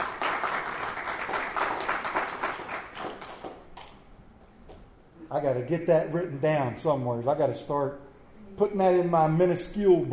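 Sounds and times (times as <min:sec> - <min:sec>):
group clapping: 0:00.0 - 0:04.8
speech: 0:05.4 - 0:10.1.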